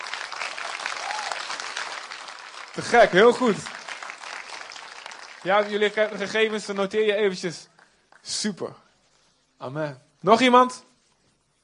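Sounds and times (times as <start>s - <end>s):
audience clapping: 0.0s - 8.4s
speech: 2.8s - 3.8s, 5.4s - 8.8s, 9.6s - 10.9s.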